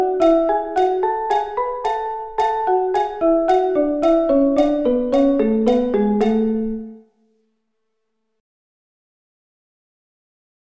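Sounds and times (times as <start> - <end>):
musical interval of a third on A: 0.0 - 7.1.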